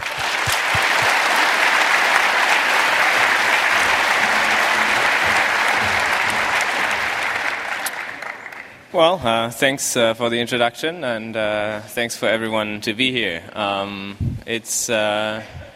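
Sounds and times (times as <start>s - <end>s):
audience round of applause: 0.0s - 8.9s
speech: 9.0s - 15.6s.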